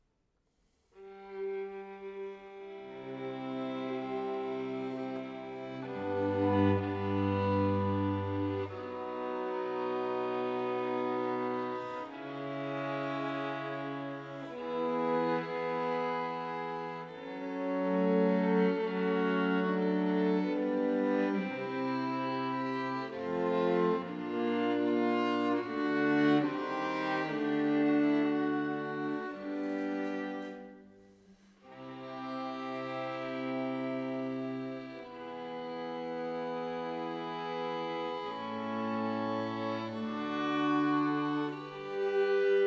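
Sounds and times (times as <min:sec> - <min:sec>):
string quartet: 0:01.0 - 0:42.6.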